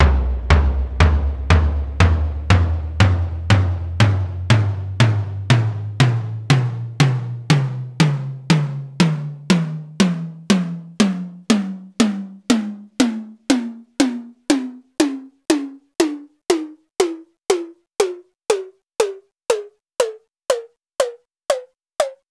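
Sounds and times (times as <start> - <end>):
melodic tom scale: 0.0 - 20.6.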